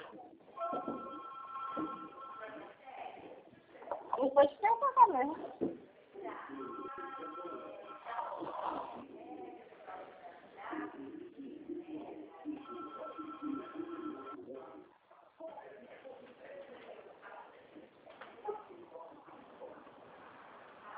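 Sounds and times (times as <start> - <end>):
murmur of voices: 0.0 - 20.9
telephones ringing in background: 0.6 - 2.6, 6.5 - 8.1, 12.6 - 14.4.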